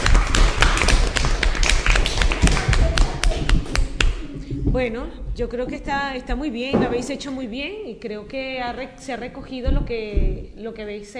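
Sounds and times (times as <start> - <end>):
applause: 0.0 - 4.1
speech: 4.8 - 11.1.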